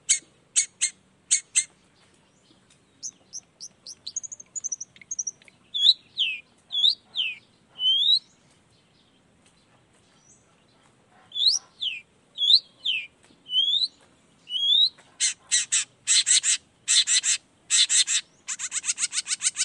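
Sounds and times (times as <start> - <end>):
long-tailed shrike calling: 3.0 - 8.3, 11.3 - 19.6.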